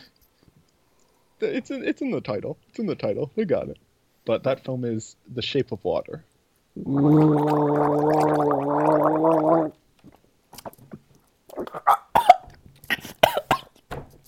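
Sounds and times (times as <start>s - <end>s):
speech: 1.4s - 8.6s
person making water gargling noises: 6.8s - 9.8s
choking coughs: 11.6s - 13.8s.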